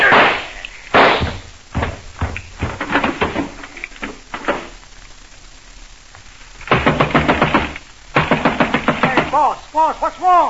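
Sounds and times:
gunshots in a radio drama: 0:00.0 - 0:03.6, 0:06.6 - 0:09.6
speech: 0:09.4 - 0:10.4.

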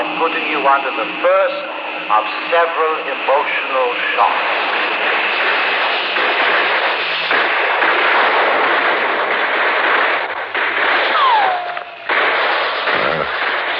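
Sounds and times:
speech: 0:00.1 - 0:05.1
gunfire in a wartime battle scene: 0:04.9 - 0:13.7
falling whistle: 0:11.1 - 0:12.0.

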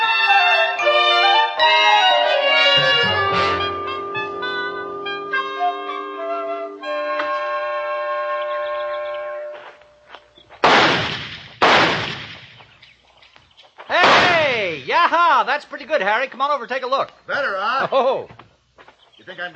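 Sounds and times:
sustained chiming tonal music: 0:00.0 - 0:09.6
target pistol shots: 0:10.6 - 0:12.6, 0:14.0 - 0:14.6
speech: 0:15.6 - 0:18.4, 0:19.2 - 0:19.5.

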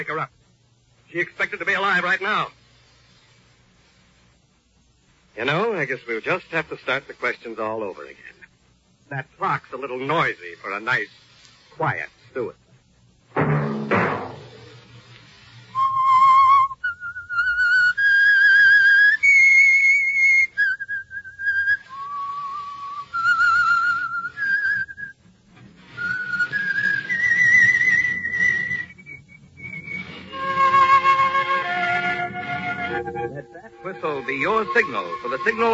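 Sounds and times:
speech: 0:00.0 - 0:00.4, 0:01.1 - 0:02.6, 0:05.4 - 0:08.4, 0:09.1 - 0:11.2, 0:11.8 - 0:12.6, 0:34.4 - 0:35.7
brief thump: 0:13.3 - 0:15.2
lone whistler whistling a slow haunting theme melody: 0:15.7 - 0:25.1, 0:26.0 - 0:35.7.

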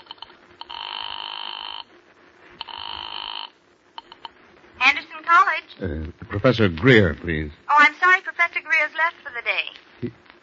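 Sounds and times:
telephone ringing: 0:00.0 - 0:01.9, 0:02.6 - 0:04.2
speech: 0:05.3 - 0:10.2.

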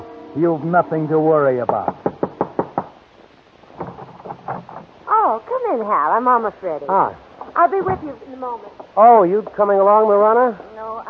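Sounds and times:
speech: 0:00.4 - 0:02.0, 0:05.9 - 0:11.0
knocking on a door: 0:01.6 - 0:03.0, 0:03.7 - 0:04.9.

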